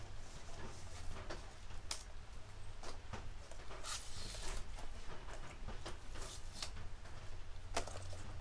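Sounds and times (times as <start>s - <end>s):
harvested green onions being trimmed and peeled: 0.2s - 8.3s.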